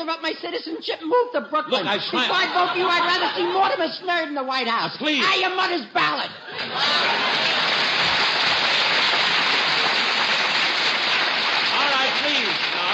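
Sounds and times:
speech: 0.0 - 8.0
laughter: 1.9 - 3.9, 6.4 - 9.0
crowd applauding: 6.6 - 12.9.

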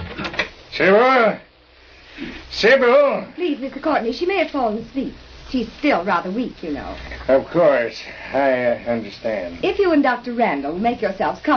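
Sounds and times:
front door opening: 0.0 - 0.6
speech: 0.8 - 1.5, 2.2 - 11.5.

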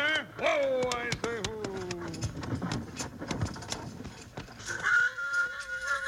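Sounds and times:
soft knocking and rustling: 0.4 - 4.9
horse whinnying up in the rocks on a western trail: 4.6 - 6.0.

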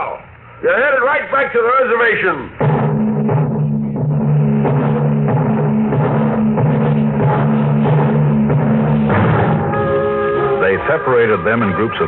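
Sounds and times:
speech: 0.6 - 3.4, 10.8 - 12.0
heavy transport plane engines revving for takeoff: 3.6 - 12.0.

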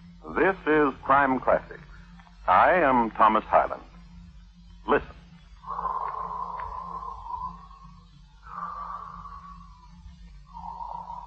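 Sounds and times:
speech: 0.4 - 1.8, 2.5 - 3.9, 4.8 - 5.2
man breathing deeply while asleep in bed in Pimlico, England: 5.5 - 11.2.

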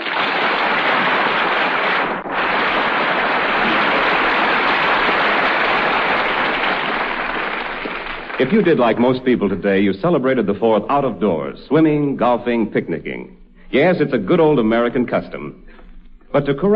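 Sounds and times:
crowd applause: 0.0 - 9.4
speech: 8.4 - 16.7.

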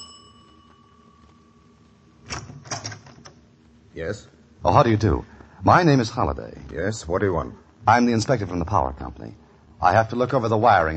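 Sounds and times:
doorbell ringing: 0.0 - 1.8
speech: 4.0 - 10.9.

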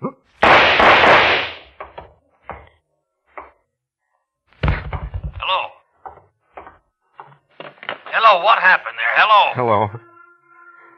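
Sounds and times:
gunshots: 0.4 - 1.8
speech: 8.3 - 10.1.

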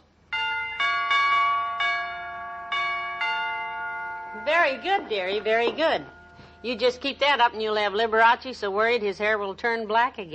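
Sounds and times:
door chimes ringing: 0.3 - 7.2
speech: 4.7 - 10.3.

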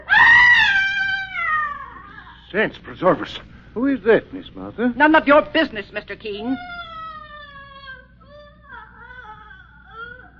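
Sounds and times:
high wailing shriek: 0.0 - 2.2
speech: 2.5 - 6.9.

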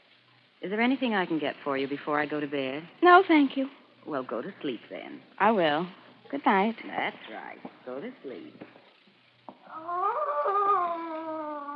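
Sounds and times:
speech: 0.6 - 8.8
distant woman screaming: 9.7 - 11.7.

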